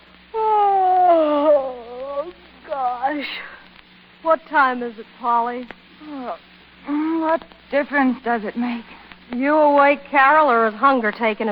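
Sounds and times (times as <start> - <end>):
woman yawning loudly: 0.4 - 2.4
speech: 3.2 - 3.5, 4.3 - 11.5.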